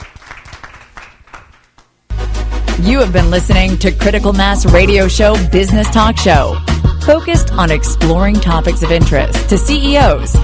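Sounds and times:
audience applause: 0.0s - 1.6s
speech: 2.8s - 10.4s.

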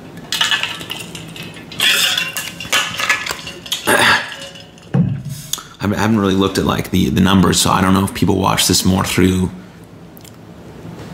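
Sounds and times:
glass clinking as it is handled for a drink of water: 0.3s - 5.7s
speech: 5.8s - 9.6s.

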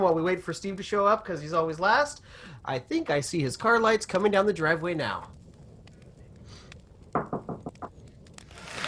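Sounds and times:
speech: 0.0s - 5.4s
knocking on a door: 7.2s - 7.8s.

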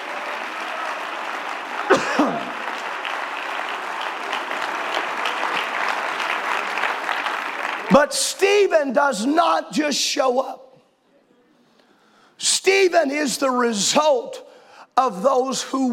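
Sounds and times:
audience clapping: 0.0s - 8.2s
speech: 8.0s - 10.6s, 12.9s - 15.9s.

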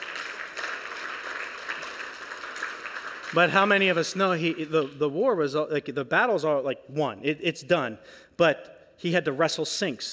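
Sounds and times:
crowd applauding: 0.0s - 5.0s
speech: 3.3s - 10.1s.

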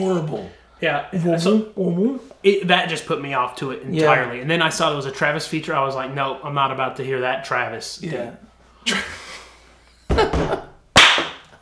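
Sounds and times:
speech: 0.0s - 9.4s, 10.2s - 10.7s
laughter: 0.0s - 10.8s
drum hits from a music track: 10.1s - 10.9s.

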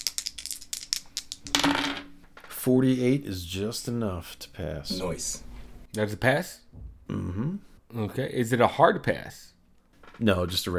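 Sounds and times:
dice being rolled: 0.0s - 2.1s
speech: 2.6s - 9.6s, 10.2s - 10.7s.

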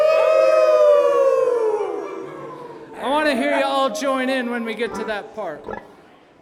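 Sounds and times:
crowd imitating sad dog howls: 0.0s - 3.4s
speech: 3.3s - 5.9s.

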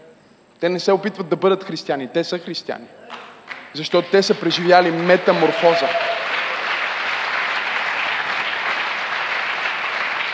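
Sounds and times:
speech: 0.6s - 6.1s
audience applause from the balcony: 3.5s - 10.3s.

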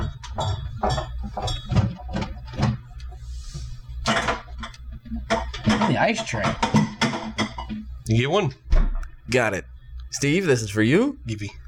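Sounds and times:
glass bottles clinking in a beer fridge: 0.0s - 2.8s, 5.3s - 7.8s
low steady hum: 0.0s - 11.6s
speech: 5.9s - 6.8s, 8.1s - 8.6s, 9.3s - 9.6s, 10.2s - 11.6s.

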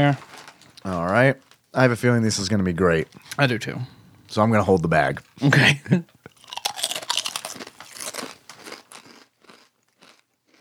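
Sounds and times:
speech: 0.0s - 6.1s
honey barbecue potato chips being bitten and chewed: 6.3s - 10.5s.

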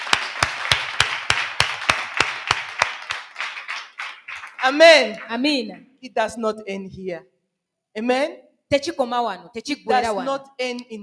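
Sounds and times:
audience clapping: 0.0s - 5.6s
speech: 4.6s - 7.3s, 8.0s - 11.0s.

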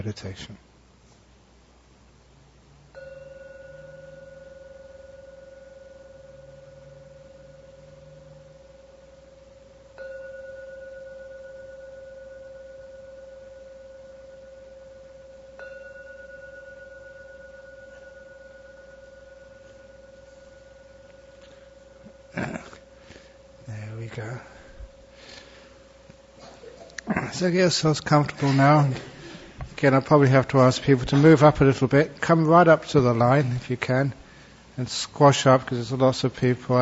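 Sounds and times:
speech: 0.0s - 0.7s, 27.4s - 29.1s, 29.8s - 34.2s, 34.8s - 36.8s
meditation gong ringing: 2.8s - 29.6s.

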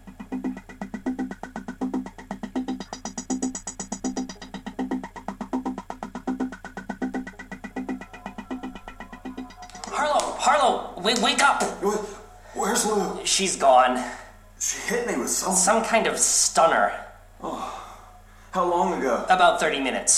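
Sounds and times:
general's vehicle engine in an audio drama: 0.0s - 11.0s
speech: 10.0s - 14.2s, 14.9s - 17.0s, 18.6s - 20.1s.

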